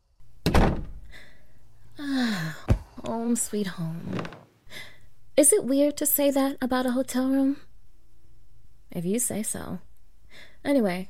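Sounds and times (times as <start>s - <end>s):
hotel room door opening thunk: 0.4s - 1.0s
speech: 3.3s - 4.4s, 5.4s - 7.7s, 8.9s - 11.0s.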